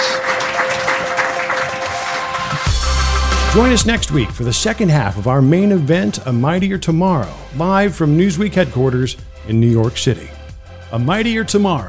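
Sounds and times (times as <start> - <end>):
audience clapping: 0.0 - 3.8
speech: 3.6 - 11.8.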